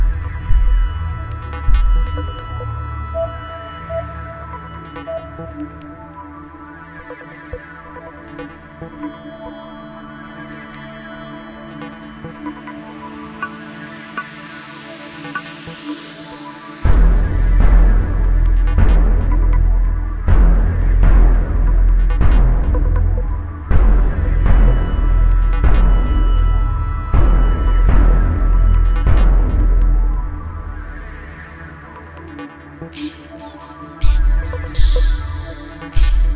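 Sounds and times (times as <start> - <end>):
background music: 0.0 - 36.3.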